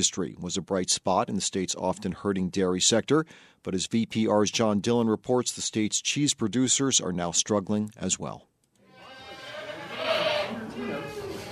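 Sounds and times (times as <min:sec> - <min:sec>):
speech: 0:00.0 - 0:08.5
Alpine and Saanen dairy goats bleating in a barn at morning milking: 0:08.9 - 0:11.5.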